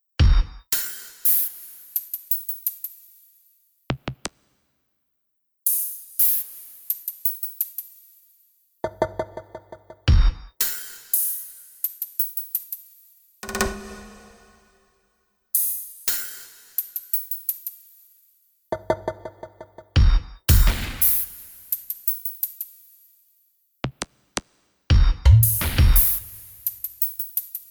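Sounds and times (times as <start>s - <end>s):
bass: 8.8s - 10.5s, 18.7s - 21.1s, 24.9s - 26.7s.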